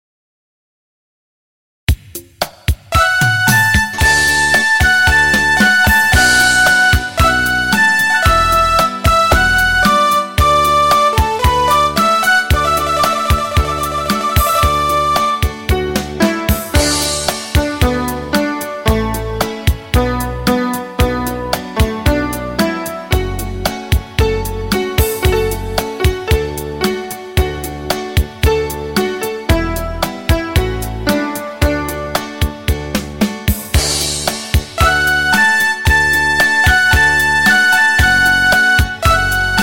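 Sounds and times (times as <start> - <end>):
music beat: 1.9 - 20.2, 20.8 - 28.6, 29.5 - 39.6.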